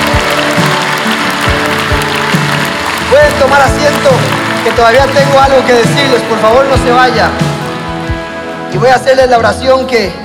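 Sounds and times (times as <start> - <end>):
audience applauding: 0.0 - 8.1
speech: 3.2 - 7.5, 8.7 - 10.2.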